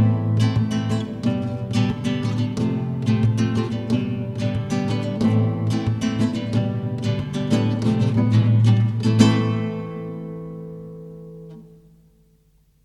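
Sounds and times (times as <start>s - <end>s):
rumba music: 0.0s - 10.2s.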